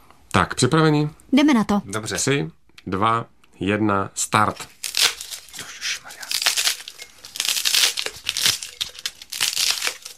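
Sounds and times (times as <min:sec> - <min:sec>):
speech: 0:00.4 - 0:04.8
polystyrene pieces crinkling pushed into a jar: 0:04.6 - 0:10.1.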